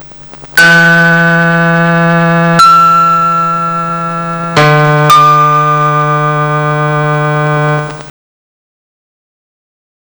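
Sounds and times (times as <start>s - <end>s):
concerto music: 0.6s - 8.1s.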